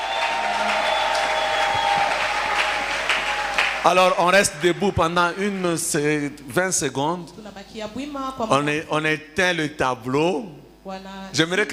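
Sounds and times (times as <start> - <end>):
church congregation at a New Year service clapping: 0.0 - 6.2
speech: 3.8 - 11.7.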